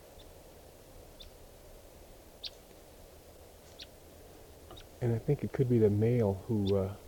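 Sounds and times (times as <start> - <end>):
low rumble: 0.0 - 7.0
wild bird calling: 1.1 - 1.4, 2.4 - 2.9, 3.6 - 7.0
speech: 5.0 - 7.0.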